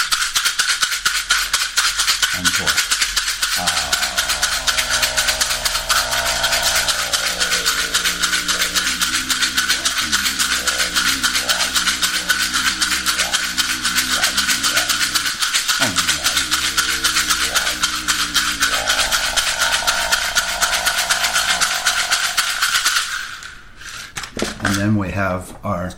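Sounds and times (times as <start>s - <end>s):
rattle shaken rapidly: 0.0s - 24.8s
speech: 2.4s - 2.9s, 3.6s - 3.9s
low wavering hum: 3.2s - 24.0s.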